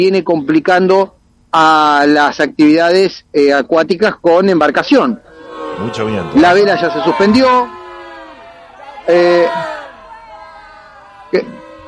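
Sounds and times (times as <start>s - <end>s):
speech: 0.0s - 7.8s, 9.0s - 9.7s, 11.3s - 11.6s
crowd whistling: 5.3s - 11.8s.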